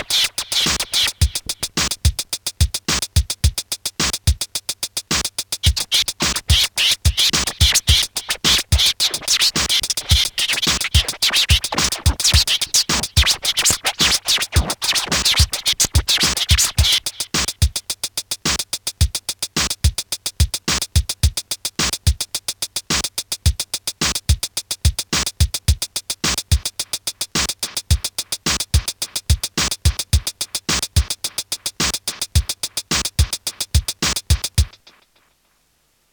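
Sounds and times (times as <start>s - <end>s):
record scratching: 0.0s - 1.8s, 5.6s - 17.5s
hardcore beat: 0.0s - 35.4s.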